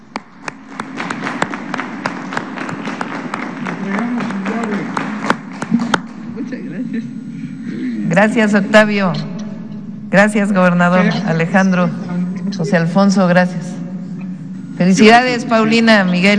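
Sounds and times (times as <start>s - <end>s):
audience applause: 0.0s - 6.3s
speech: 8.2s - 9.3s, 10.1s - 13.7s, 14.8s - 16.3s.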